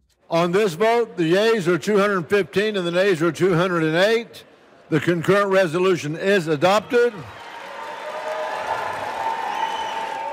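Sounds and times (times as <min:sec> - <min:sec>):
speech: 0:00.3 - 0:07.4
voices cheering: 0:06.8 - 0:10.3
crowd applauding: 0:07.2 - 0:10.3.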